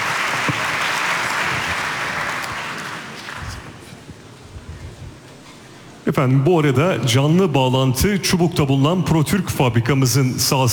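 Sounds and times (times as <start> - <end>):
audience applause: 0.0 - 3.8
speech: 6.1 - 10.7.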